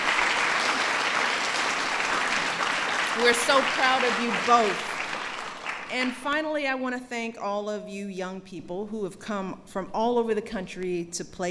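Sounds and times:
crowd applause for two young performers: 0.0s - 6.2s
speech: 3.2s - 4.9s, 5.9s - 11.5s.

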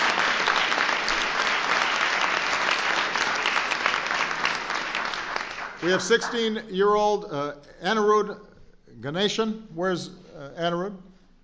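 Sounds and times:
audience applause: 0.0s - 6.6s
speech: 5.8s - 11.1s.

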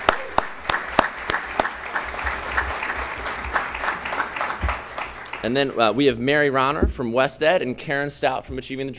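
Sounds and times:
audience applause: 0.0s - 5.8s
speech: 5.4s - 8.9s.

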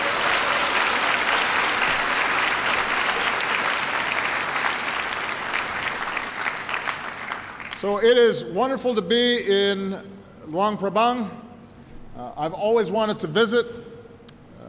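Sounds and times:
audience applause: 0.0s - 7.8s
speech: 7.8s - 11.4s, 12.2s - 13.8s.

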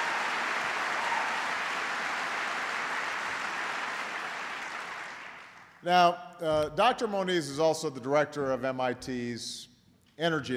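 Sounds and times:
audience applause: 0.0s - 5.8s
speech: 5.8s - 10.5s.

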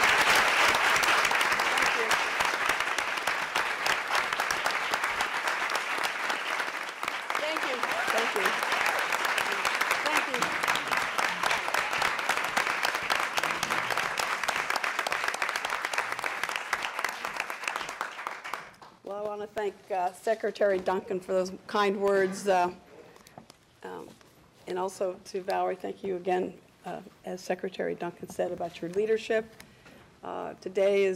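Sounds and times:
audience applause: 0.0s - 18.9s
speech: 19.7s - 22.8s, 24.7s - 29.6s, 30.3s - 31.1s.

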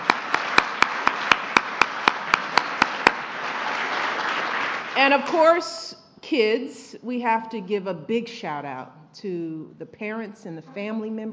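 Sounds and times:
crowd round of applause: 0.0s - 5.2s
speech: 5.0s - 11.3s.

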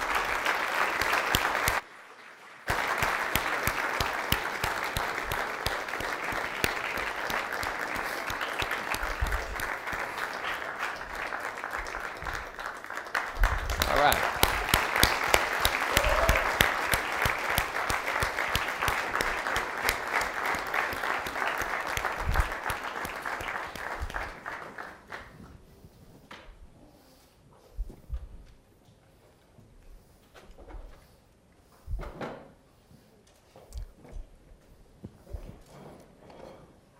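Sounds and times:
audience applause welcoming a singing group: 0.0s - 25.3s.

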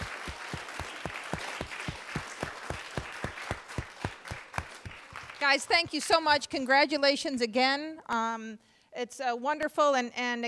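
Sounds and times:
audience applauding: 0.0s - 6.2s
speech: 5.4s - 10.4s.

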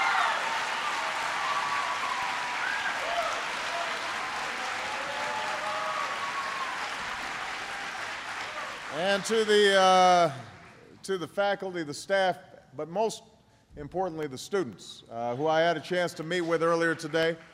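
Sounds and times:
round of applause: 0.0s - 11.0s, 16.4s - 17.5s
speech: 9.0s - 17.5s.

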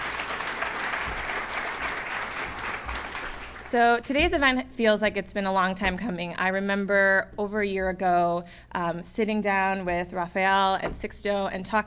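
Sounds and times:
audience applause: 0.0s - 3.7s
speech: 3.7s - 11.8s.

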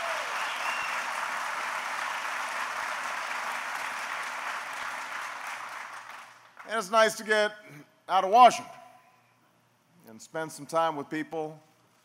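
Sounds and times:
audience applause: 0.0s - 6.6s
speech: 6.7s - 8.8s, 10.1s - 11.7s.

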